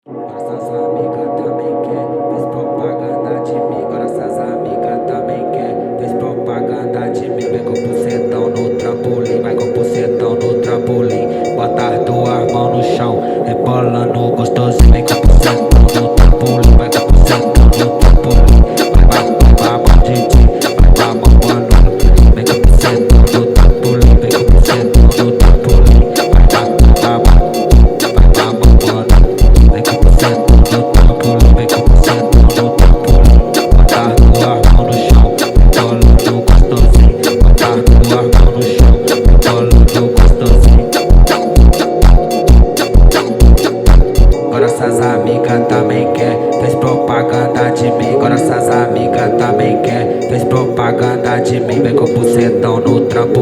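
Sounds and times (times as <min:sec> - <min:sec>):
phonk music: 0:00.0 - 0:53.4.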